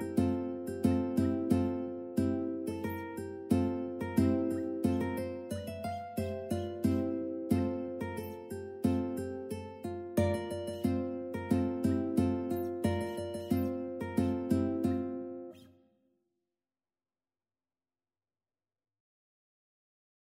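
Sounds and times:
ukulele playing a Christmas carol: 0:00.0 - 0:15.6.

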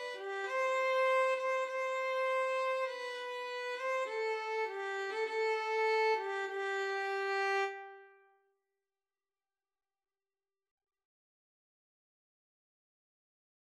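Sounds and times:
violin and cello duet: 0:00.0 - 0:07.8.

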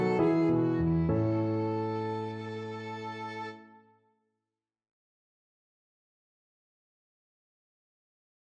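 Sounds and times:
violin: 0:00.0 - 0:04.0.

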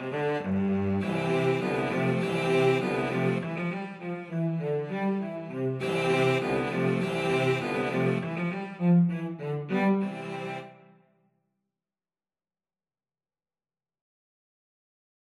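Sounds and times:
cello quartet: 0:00.0 - 0:10.9.

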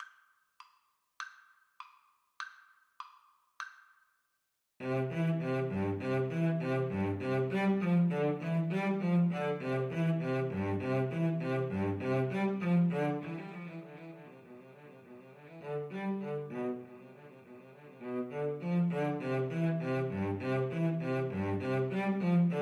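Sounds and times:
cello duet: 0:04.8 - 0:22.6.

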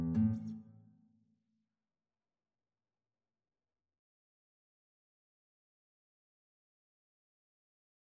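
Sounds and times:
cello: 0:00.0 - 0:00.6
guitar: 0:00.0 - 0:00.9.

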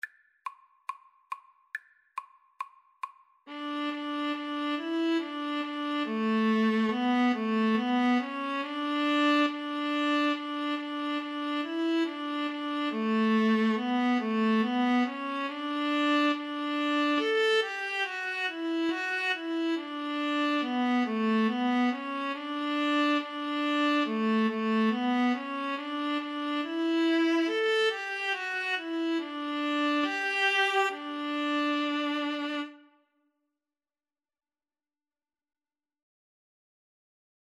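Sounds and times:
viola duet: 0:03.5 - 0:33.0.

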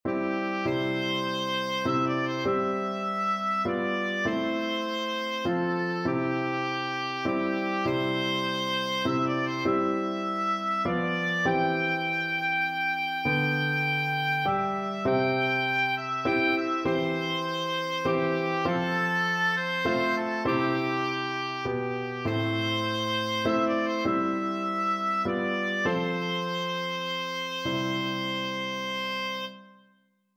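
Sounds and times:
oboe melody: 0:00.1 - 0:29.8.

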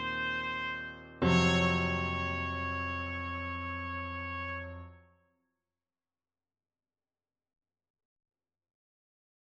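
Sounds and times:
boogie trumpet: 0:00.0 - 0:05.1.

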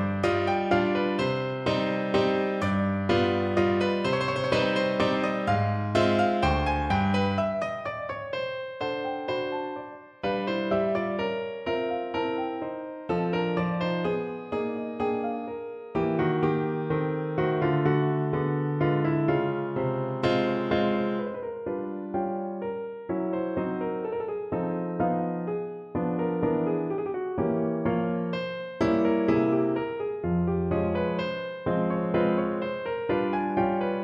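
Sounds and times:
piano mazurka: 0:00.0 - 0:34.0.

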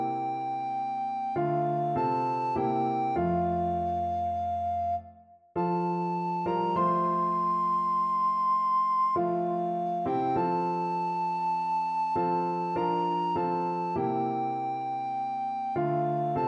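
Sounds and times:
alto recorder melody: 0:00.0 - 0:16.4.

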